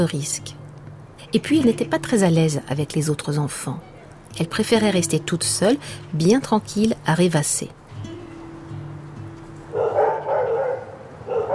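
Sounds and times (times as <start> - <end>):
speech: 0.0 - 0.6, 1.3 - 7.8
low steady hum: 0.0 - 9.4
two large black muscular dogs barking: 9.7 - 11.5.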